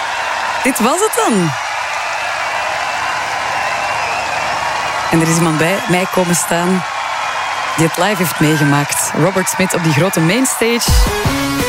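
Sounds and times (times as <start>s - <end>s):
festival crowd applause: 0.0s - 11.6s
speech: 0.6s - 1.6s, 5.1s - 7.0s, 7.8s - 11.6s.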